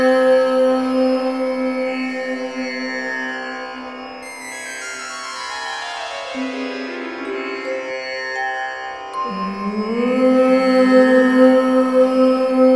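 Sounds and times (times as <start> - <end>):
woman chanting om: 0.0 - 4.0, 9.2 - 12.7.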